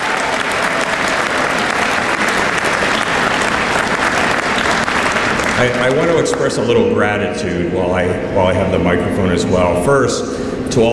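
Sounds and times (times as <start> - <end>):
crowd applause: 0.0 - 6.7
speech: 5.6 - 10.9.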